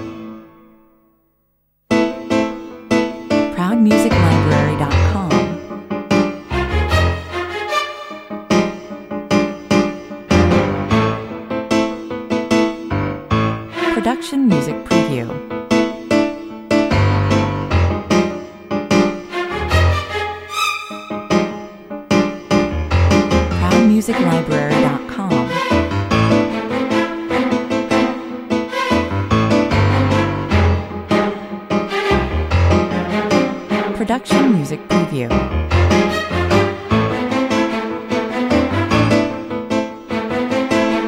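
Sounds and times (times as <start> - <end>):
action music at 150 bpm: 2.0 - 41.0.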